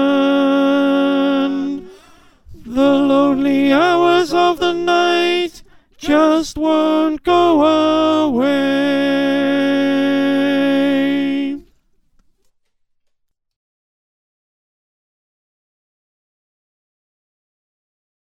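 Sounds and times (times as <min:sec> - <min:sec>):
alto choir singing: 0:00.0 - 0:11.7.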